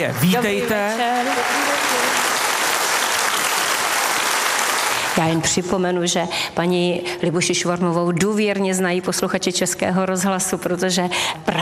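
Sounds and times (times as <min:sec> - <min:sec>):
speech: 0:00.0 - 0:01.7, 0:05.2 - 0:11.6
audience applause: 0:00.0 - 0:05.6.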